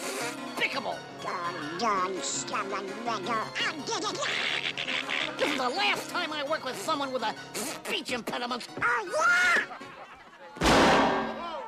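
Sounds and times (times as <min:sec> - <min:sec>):
speech: 0:00.7 - 0:09.8
laughter: 0:04.1 - 0:05.6, 0:09.3 - 0:10.6
cannon firing: 0:10.6 - 0:11.6.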